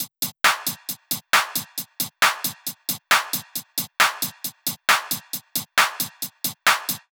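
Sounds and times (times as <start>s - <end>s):
135 bpm drum loop: 0.0s - 7.0s.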